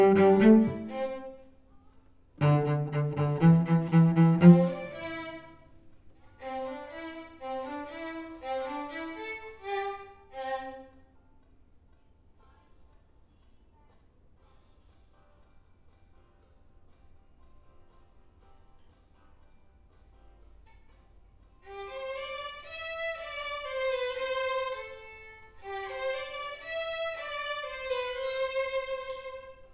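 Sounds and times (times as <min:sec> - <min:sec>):
cello: 0:00.0 - 0:01.5, 0:02.4 - 0:05.6, 0:06.4 - 0:11.1, 0:21.6 - 0:29.7.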